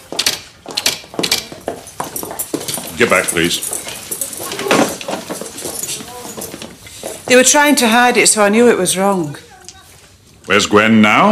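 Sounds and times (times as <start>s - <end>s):
mechanical typewriter keys clacking: 0.2s - 6.6s
speech: 3.0s - 3.9s, 7.3s - 9.5s, 10.5s - 11.2s.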